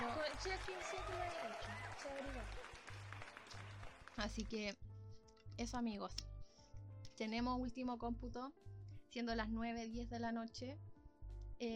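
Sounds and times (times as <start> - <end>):
applause: 0.0 - 4.7
speech: 0.3 - 3.0, 4.2 - 4.9, 5.5 - 6.3, 7.2 - 10.9.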